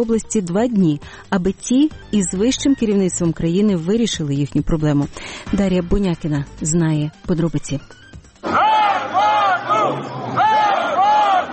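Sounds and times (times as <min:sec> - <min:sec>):
speech: 0:00.0 - 0:08.1
murmur of voices: 0:08.4 - 0:11.5
protesters shouting outside administration building: 0:08.4 - 0:11.5.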